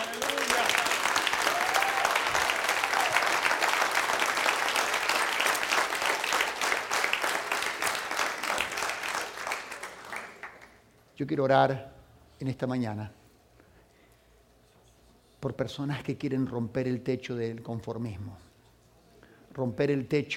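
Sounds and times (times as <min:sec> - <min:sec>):
faint voices or cheers: 0:00.0 - 0:03.6
applause from a large crowd: 0:00.0 - 0:10.8
speech: 0:11.2 - 0:13.2, 0:15.4 - 0:18.5, 0:19.6 - 0:20.3.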